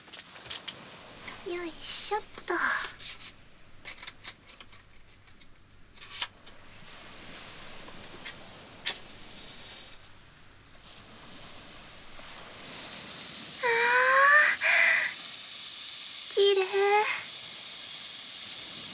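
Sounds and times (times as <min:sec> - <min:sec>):
speech: 0:01.5 - 0:02.9
handheld firework sparkling and crackling: 0:08.9 - 0:18.9.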